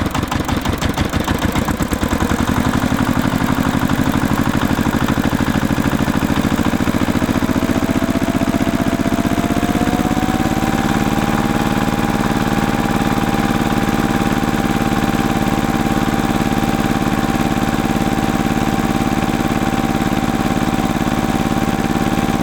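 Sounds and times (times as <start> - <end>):
tractor engine on a farm: 0.0 - 22.4.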